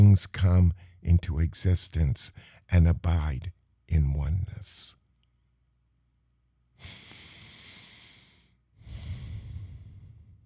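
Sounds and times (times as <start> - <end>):
speech: 0.1 - 5.0, 6.8 - 7.0
deep breaths: 2.3 - 2.7, 6.8 - 10.4.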